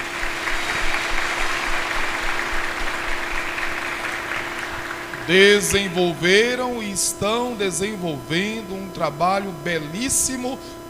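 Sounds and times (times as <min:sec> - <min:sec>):
audience applause: 0:00.0 - 0:06.0
speech: 0:05.3 - 0:10.8.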